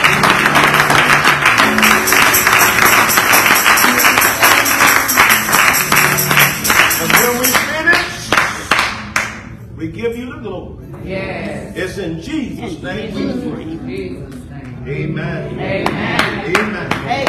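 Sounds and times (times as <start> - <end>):
audience clapping hands in a steady rhythm: 0.0 - 9.5, 15.8 - 17.2
speech: 10.4 - 17.2.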